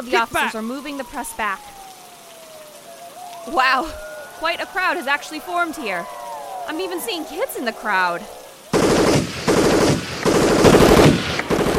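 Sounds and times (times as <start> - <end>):
speech: 0.0 - 1.7, 3.4 - 8.4
automatic gunfire bursts: 8.8 - 11.7.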